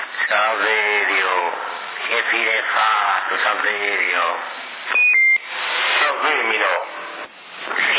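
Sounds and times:
people talking: 0:00.2 - 0:04.5, 0:05.9 - 0:06.9, 0:07.7 - 0:07.9
telephone electronic beeps: 0:04.9 - 0:05.4.

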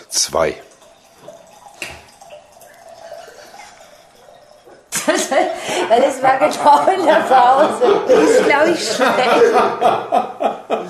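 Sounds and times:
pouring a drink: 0:00.0 - 0:07.0
speech: 0:00.1 - 0:00.7, 0:05.3 - 0:10.8
laughter: 0:05.0 - 0:10.8.

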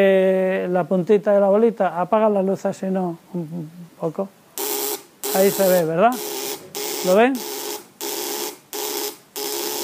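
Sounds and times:
speech: 0:00.0 - 0:04.4, 0:05.3 - 0:06.3, 0:07.0 - 0:07.5
high-voltage spark buzzing: 0:04.6 - 0:09.8.

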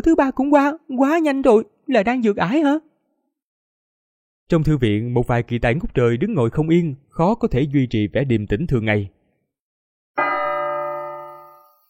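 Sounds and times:
speech: 0:00.0 - 0:02.9, 0:04.5 - 0:09.2
bell ringing: 0:10.2 - 0:11.8.

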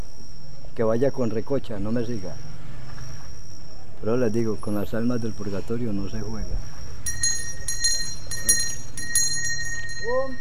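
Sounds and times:
speech: 0:00.8 - 0:02.5, 0:04.0 - 0:06.8, 0:10.0 - 0:10.3
hand bell ringing: 0:07.0 - 0:10.3.

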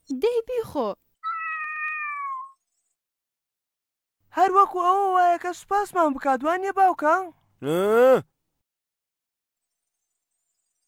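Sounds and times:
speech: 0:00.2 - 0:01.0, 0:04.7 - 0:08.3
cartoon cat meowing: 0:01.2 - 0:02.6.

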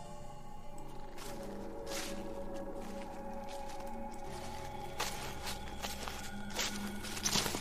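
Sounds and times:
bushes rustling: 0:00.9 - 0:07.5.

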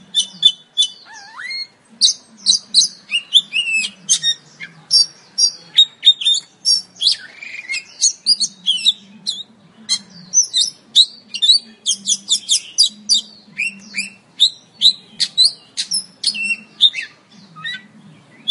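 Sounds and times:
Oriental magpie-robin song: 0:00.0 - 0:18.4
faint low hum: 0:00.0 - 0:18.4.

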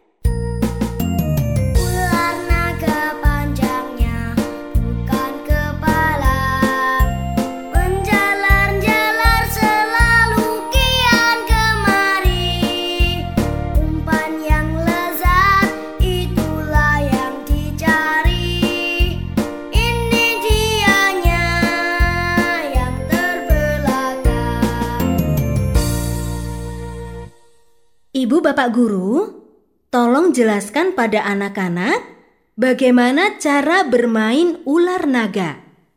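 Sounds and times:
children's game song with chiming tinkly tones: 0:00.0 - 0:27.5
speech: 0:28.6 - 0:29.4, 0:30.4 - 0:35.6.

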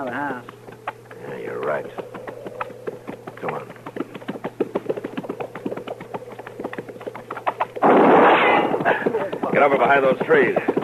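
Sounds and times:
speech: 0:00.0 - 0:00.6, 0:01.2 - 0:02.2, 0:09.6 - 0:10.7
gunshot: 0:07.8 - 0:08.8.

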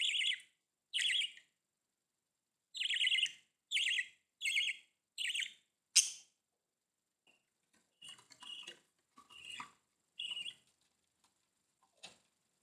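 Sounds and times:
budgerigar chirps and squawk: 0:00.0 - 0:01.4, 0:02.8 - 0:06.2, 0:08.0 - 0:10.6.

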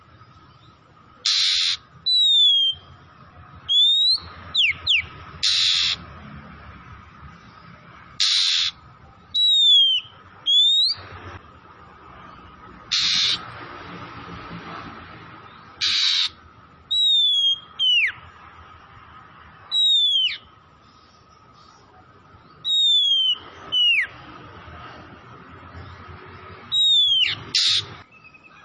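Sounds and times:
oriental magpie-robin with harsh raspy bursts and sliding whistles: 0:00.6 - 0:03.0, 0:03.6 - 0:06.0, 0:08.2 - 0:11.1, 0:12.9 - 0:13.4, 0:15.8 - 0:18.2, 0:19.7 - 0:24.2, 0:26.6 - 0:28.6.

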